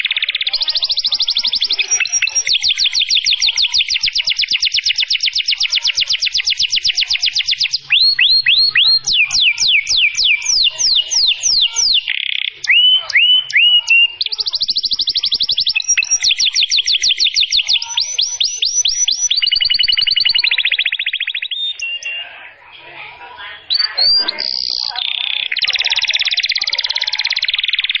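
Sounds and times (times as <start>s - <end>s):
canary singing: 0.0s - 27.9s.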